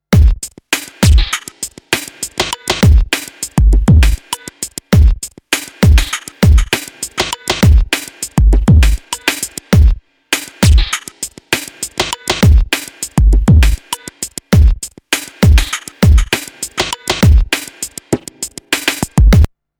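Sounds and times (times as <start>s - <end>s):
two-step beat: 0.0s - 19.5s.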